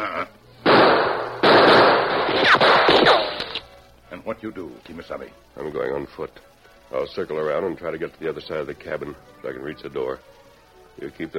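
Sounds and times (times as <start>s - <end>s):
gunshots exchanged in a shootout: 0.6s - 3.6s
speech: 4.3s - 10.3s, 11.0s - 11.3s.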